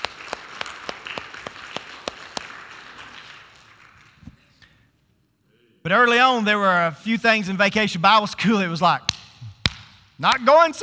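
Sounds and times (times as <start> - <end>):
audience applause: 0.0 - 4.2
speech: 5.9 - 9.3, 10.2 - 10.8.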